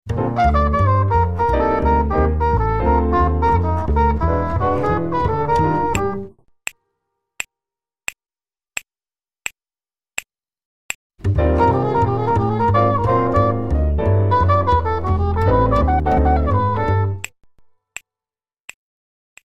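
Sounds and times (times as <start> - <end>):
drumless backing track: 0.1 - 6.3, 11.2 - 17.3.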